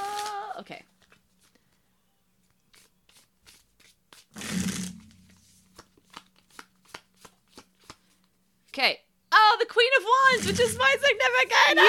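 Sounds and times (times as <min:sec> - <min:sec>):
speech: 0:00.6 - 0:00.9, 0:08.8 - 0:09.0, 0:09.8 - 0:11.8
tarot cards riffling: 0:02.7 - 0:08.4.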